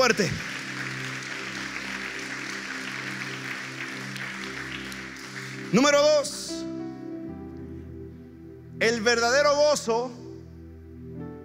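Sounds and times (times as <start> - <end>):
speech: 0.0 - 0.5, 5.7 - 6.7, 8.8 - 10.2
audience applause: 0.0 - 6.0.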